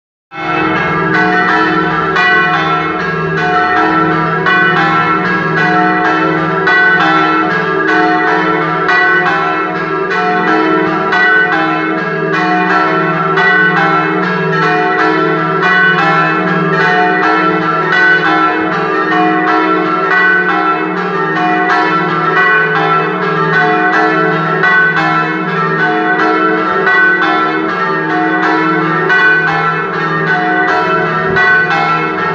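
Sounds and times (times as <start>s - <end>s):
bells ringing: 0.3s - 32.3s.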